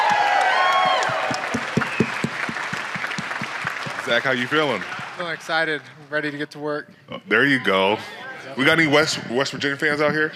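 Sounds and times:
crowd applause: 0.0 - 5.9
speech: 4.1 - 10.3.

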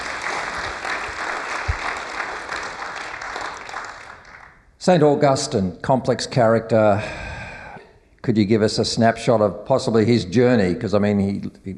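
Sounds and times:
crowd applauding: 0.0 - 4.6
speech: 4.8 - 7.2, 8.2 - 11.7.

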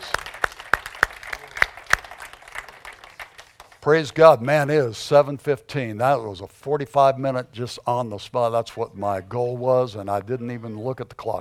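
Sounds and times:
crowd applauding: 0.0 - 4.2
speech: 3.8 - 11.3.

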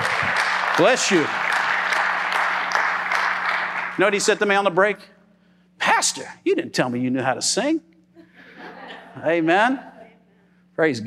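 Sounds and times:
crowd clapping: 0.0 - 4.8
faint steady hum: 0.0 - 11.0
speech: 0.8 - 1.4, 4.0 - 5.2, 6.0 - 7.9, 9.2 - 9.9, 10.8 - 11.0
laughter: 8.2 - 10.2.

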